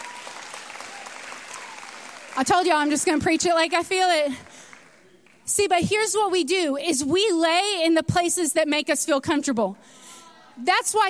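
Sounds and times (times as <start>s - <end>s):
audience hand clapping: 0.0s - 5.4s
speech: 2.4s - 4.7s, 5.5s - 10.0s, 10.6s - 11.0s.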